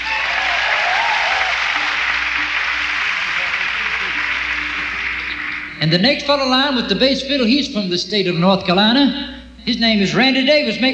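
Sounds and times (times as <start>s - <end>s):
audience applause at a live country music show: 0.0s - 5.8s
speech: 5.8s - 10.9s.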